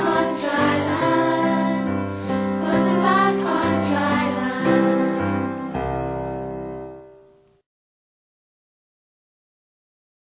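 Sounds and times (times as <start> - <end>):
music: 0.0 - 7.6.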